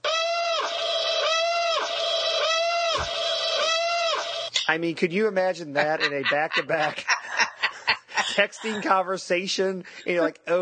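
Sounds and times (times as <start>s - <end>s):
sci-fi battle alarm ringtone: 0.3s - 4.5s
speech: 4.7s - 7.1s, 8.4s - 10.5s
laughter: 5.6s - 9.2s.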